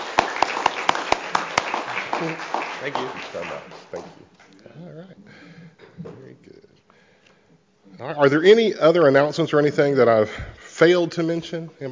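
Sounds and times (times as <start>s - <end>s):
church audience applause for two youth helpers: 0.0s - 4.6s
speech: 2.2s - 6.8s, 7.9s - 11.8s.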